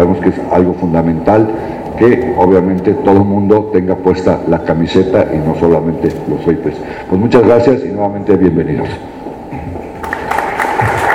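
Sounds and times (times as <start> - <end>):
speech: 0.0 - 9.2
audience applause: 10.0 - 11.1.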